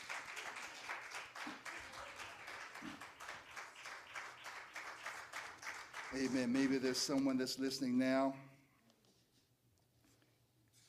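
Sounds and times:
audience applause: 0.0s - 7.2s
speech: 6.1s - 8.5s.

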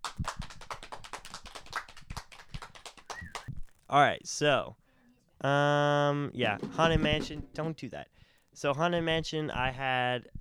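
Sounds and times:
applause sound effect: 0.0s - 3.5s
speech: 3.9s - 4.8s, 5.4s - 10.4s.

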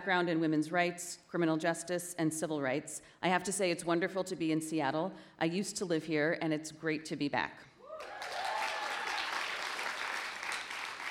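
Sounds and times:
speech: 0.0s - 8.2s
audience applause: 7.9s - 11.0s.

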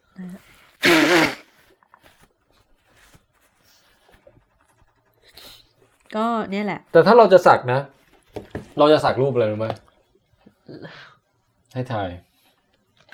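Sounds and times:
speech: 0.2s - 1.4s, 6.2s - 8.0s, 8.8s - 9.9s, 11.7s - 12.3s
nose blowing: 0.6s - 2.0s.

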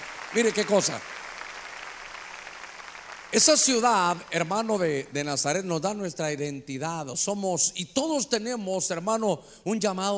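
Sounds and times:
people clapping loudly: 0.0s - 5.2s
speech: 0.3s - 1.2s, 3.3s - 10.1s.

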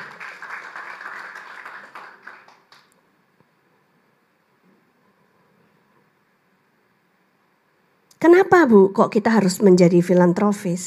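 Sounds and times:
crowd applause: 0.0s - 3.0s
speech: 8.2s - 10.8s.

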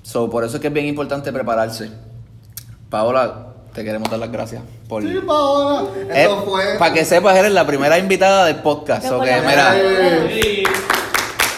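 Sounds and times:
speech: 0.1s - 2.1s, 2.9s - 10.8s
applause: 10.4s - 11.5s.

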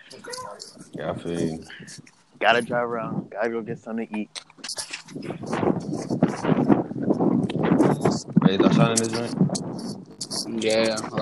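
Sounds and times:
speech: 0.1s - 6.7s, 7.3s - 11.1s
strong gusty wind blowing outdoors buffeting the microphone: 0.2s - 3.9s, 5.0s - 11.1s.

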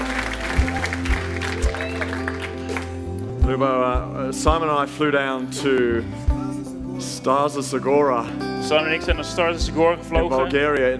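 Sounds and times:
audience applause: 0.0s - 3.0s
speech: 3.5s - 6.4s, 7.2s - 10.9s.

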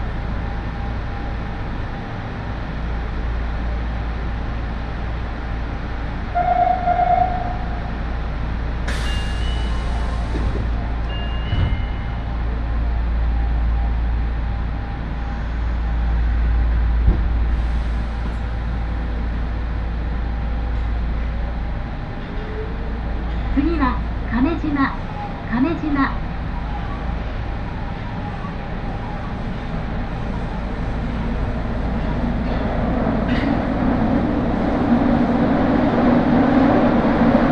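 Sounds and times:
train rumble on Nagoya's Aonami and Higashiyama lines: 0.0s - 37.5s.

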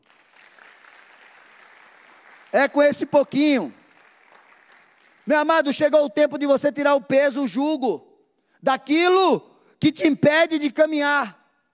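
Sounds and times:
audience applauding: 0.0s - 5.7s
speech: 2.5s - 3.8s, 5.3s - 11.4s.

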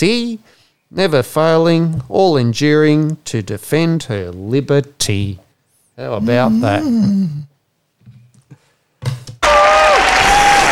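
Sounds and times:
speech: 0.0s - 5.4s, 6.0s - 7.5s
audience applause: 9.4s - 10.6s.

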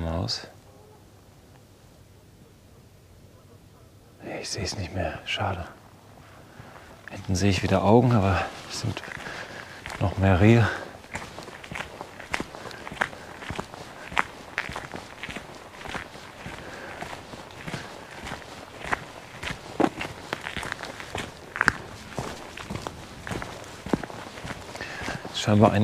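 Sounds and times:
speech: 0.2s - 0.6s, 4.4s - 5.8s, 7.1s - 9.2s, 10.0s - 10.8s, 25.5s - 25.8s
stepping on a stick in the forest: 7.1s - 25.8s.

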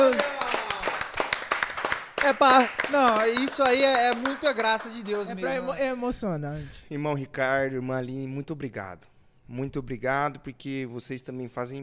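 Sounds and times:
audience applause: 0.0s - 5.5s
speech: 2.3s - 11.8s.

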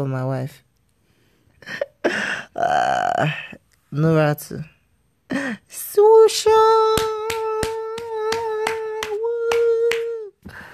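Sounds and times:
speech: 0.0s - 0.7s, 1.6s - 4.8s, 5.7s - 7.2s
hand clapping: 6.5s - 10.6s.

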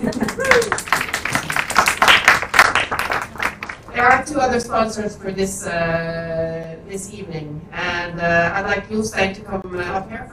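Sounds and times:
speech: 0.0s - 0.6s, 4.3s - 10.3s
audience applause: 0.0s - 3.9s.

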